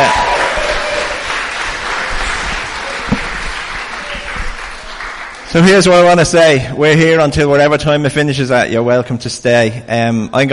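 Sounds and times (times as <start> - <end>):
audience applause: 0.0 - 6.0
speech: 5.5 - 10.5.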